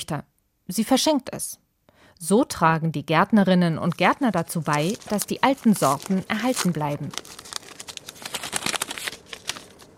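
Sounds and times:
speech: 0.0s - 1.6s, 2.2s - 7.4s
small brown paper bag torn open: 3.9s - 9.9s.

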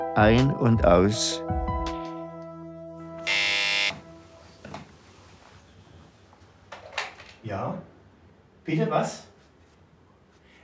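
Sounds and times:
speech: 0.2s - 1.6s, 8.7s - 9.3s
doorbell buzzer: 3.3s - 4.0s.

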